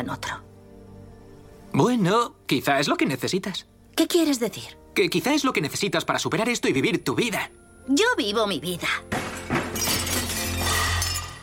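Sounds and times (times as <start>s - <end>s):
speech: 0.0s - 0.4s, 1.8s - 9.2s
stacked kitchen plates falling and shattering: 9.1s - 11.4s.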